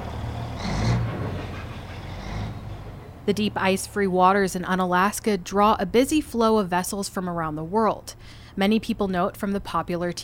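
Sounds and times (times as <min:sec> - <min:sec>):
tractors and heavy machinery on busy docks: 0:00.0 - 0:05.0
speech: 0:03.2 - 0:10.2.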